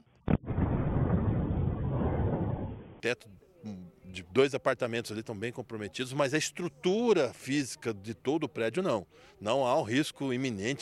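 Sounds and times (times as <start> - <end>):
gas explosion in apartment building: 0.3 - 3.0
speech: 3.0 - 10.8.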